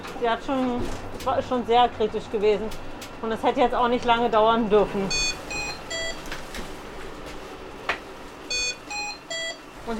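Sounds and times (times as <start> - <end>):
low hum of room noise: 0.0 - 9.9
speech: 0.2 - 5.3
medical device alarm beeping: 5.1 - 6.3, 8.5 - 9.7.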